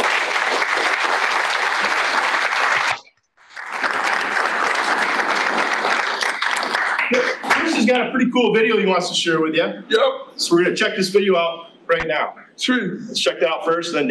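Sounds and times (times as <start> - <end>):
crowd applause: 0.0 - 7.8
speech: 7.9 - 14.0.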